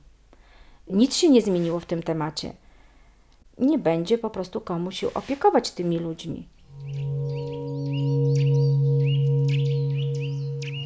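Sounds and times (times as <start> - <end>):
speech: 0.9 - 2.6, 3.6 - 7.0
Eurasian nuthatch whistling call: 6.7 - 10.8.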